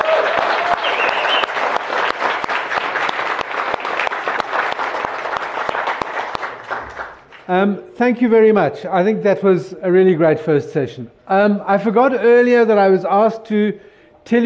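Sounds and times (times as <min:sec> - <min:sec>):
audience applause: 0:00.0 - 0:07.5
speech: 0:07.5 - 0:14.4.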